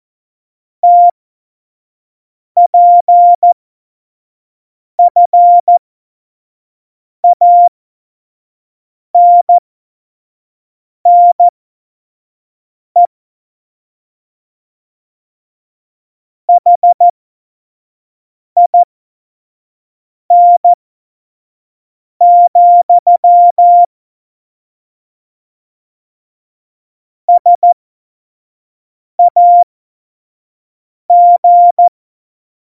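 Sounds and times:
CW Morse code beeps: 0:00.8 - 0:01.1, 0:02.7 - 0:03.6, 0:05.0 - 0:05.8, 0:07.2 - 0:07.7, 0:09.2 - 0:09.6, 0:11.1 - 0:11.5, 0:16.6 - 0:17.1, 0:18.6 - 0:18.8, 0:20.3 - 0:20.8, 0:22.2 - 0:23.9, 0:27.3 - 0:27.8, 0:29.2 - 0:29.6, 0:31.1 - 0:31.9.

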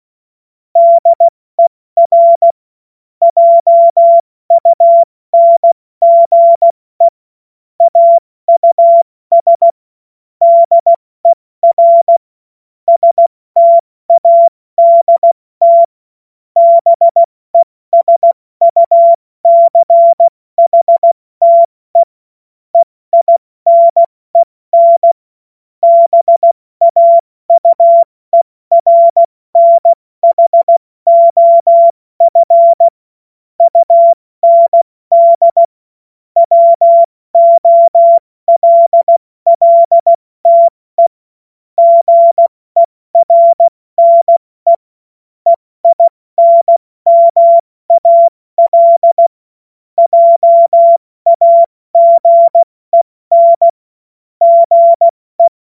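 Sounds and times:
CW Morse code beeps: 0:00.8 - 0:02.6, 0:03.2 - 0:07.2, 0:07.8 - 0:09.8, 0:10.4 - 0:12.2, 0:12.9 - 0:15.9, 0:16.6 - 0:22.1, 0:22.8 - 0:25.2, 0:25.8 - 0:33.0, 0:33.6 - 0:35.8, 0:36.4 - 0:41.2, 0:41.8 - 0:44.9, 0:45.5 - 0:49.4, 0:50.0 - 0:53.8, 0:54.4 - 0:55.5.

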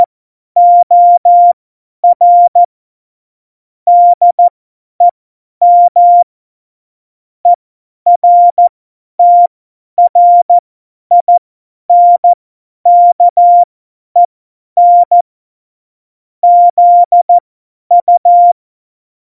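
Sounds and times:
CW Morse code at tempo 70: 0:00.0 - 0:02.7, 0:03.9 - 0:04.5, 0:05.6 - 0:06.3, 0:08.1 - 0:11.3, 0:11.9 - 0:15.2, 0:16.4 - 0:18.6.

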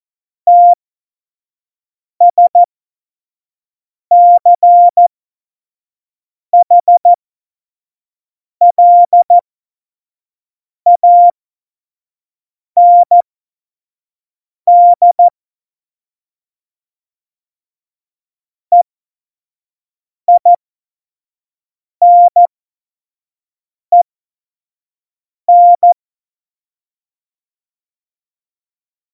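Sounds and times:
CW Morse code at tempo 70: 0:00.5 - 0:00.8, 0:02.2 - 0:02.7, 0:04.1 - 0:05.0, 0:06.6 - 0:07.1, 0:08.6 - 0:09.4, 0:10.9 - 0:11.3, 0:12.8 - 0:13.2, 0:14.7 - 0:15.3, 0:20.3 - 0:20.6, 0:22.0 - 0:22.5, 0:25.5 - 0:26.0.

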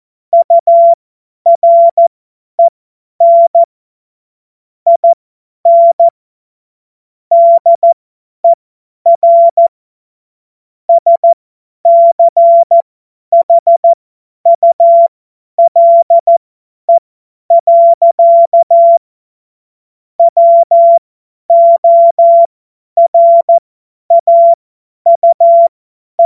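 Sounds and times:
morse code beeps: 0:00.3 - 0:03.7, 0:04.9 - 0:06.1, 0:07.3 - 0:09.7, 0:10.9 - 0:13.9, 0:14.5 - 0:19.0, 0:20.2 - 0:26.2.

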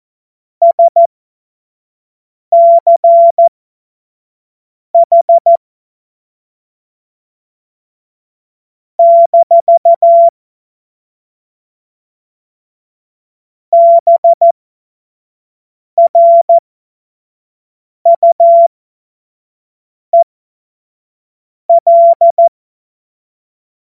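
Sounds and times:
Morse code course tones: 0:00.6 - 0:01.1, 0:02.6 - 0:03.5, 0:09.0 - 0:10.3, 0:13.8 - 0:14.5, 0:16.0 - 0:16.5, 0:18.1 - 0:18.7, 0:21.8 - 0:22.5.

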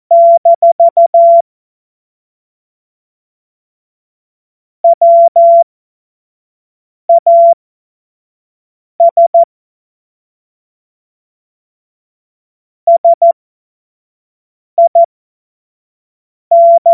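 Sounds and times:
CW Morse code beeps: 0:00.1 - 0:01.4, 0:04.8 - 0:05.6, 0:07.1 - 0:07.6, 0:09.0 - 0:09.5, 0:12.9 - 0:13.4, 0:14.8 - 0:15.1, 0:16.5 - 0:16.9.

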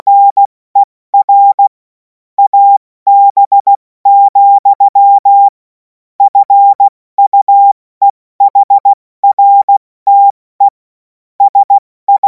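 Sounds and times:
CW Morse code beeps: 0:00.0 - 0:01.7, 0:02.4 - 0:05.6, 0:06.2 - 0:07.8, 0:08.4 - 0:10.4, 0:11.4 - 0:12.2.

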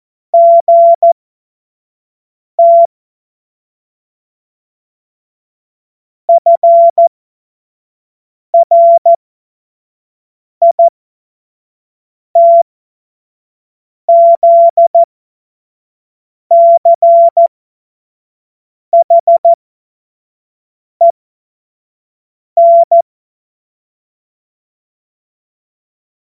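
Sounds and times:
CW Morse code beeps: 0:00.4 - 0:01.2, 0:02.6 - 0:02.9, 0:06.3 - 0:07.1, 0:08.6 - 0:09.2, 0:10.6 - 0:10.9, 0:12.4 - 0:12.6, 0:14.1 - 0:15.1, 0:16.5 - 0:17.5, 0:19.0 - 0:19.6, 0:22.6 - 0:23.0.

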